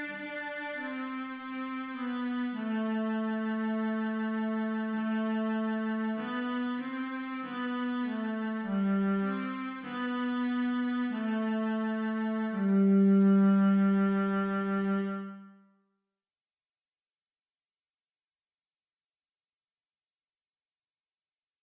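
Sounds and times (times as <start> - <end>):
cello: 0.0 - 15.7.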